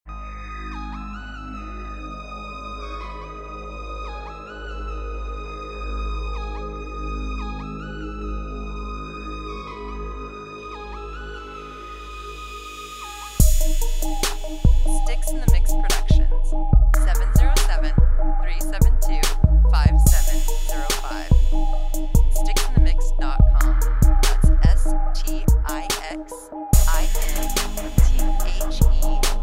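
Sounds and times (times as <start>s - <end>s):
distant trap beat: 13.3s - 29.4s.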